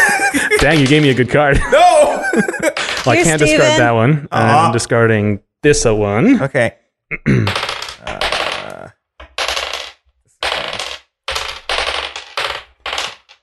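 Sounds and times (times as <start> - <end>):
laughter: 0.0 - 3.8
dice being rolled in a board game: 0.5 - 1.4, 2.5 - 3.8, 7.5 - 13.4
speech: 0.6 - 8.2.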